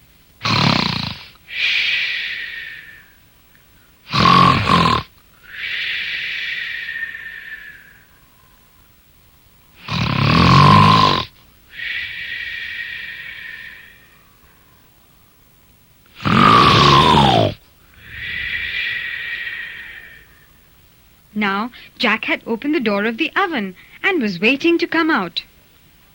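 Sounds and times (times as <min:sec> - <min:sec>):
giant snoring loudly: 0:00.4 - 0:01.4, 0:04.1 - 0:05.1, 0:09.8 - 0:14.0, 0:16.2 - 0:20.3
speech: 0:21.4 - 0:25.5.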